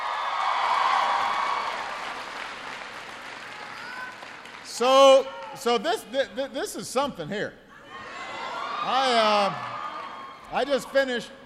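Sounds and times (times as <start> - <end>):
audience applause: 0.0 - 5.6
speech: 4.8 - 7.6, 8.8 - 9.7, 10.5 - 11.4.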